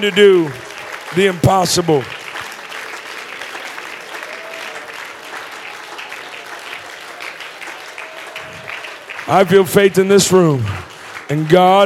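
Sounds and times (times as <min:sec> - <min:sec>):
speech: 0:00.0 - 0:02.2, 0:09.3 - 0:11.8
audience clapping hands: 0:00.0 - 0:11.8.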